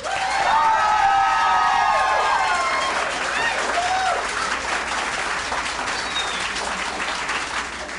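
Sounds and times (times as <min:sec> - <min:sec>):
audience applause and cheering: 0:00.0 - 0:07.9
whistles: 0:05.9 - 0:06.7.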